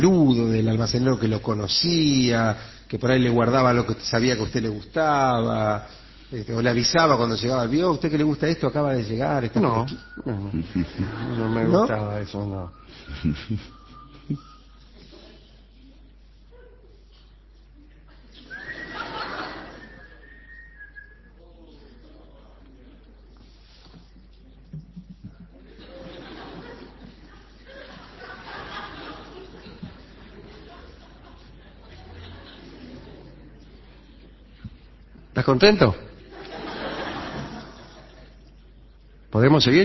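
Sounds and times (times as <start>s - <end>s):
speech: 0.0s - 14.5s, 35.4s - 36.1s, 39.3s - 39.8s
laughter: 10.2s - 15.7s, 18.1s - 20.5s, 24.9s - 34.2s, 36.2s - 38.5s
bird whistling: 18.4s - 19.1s.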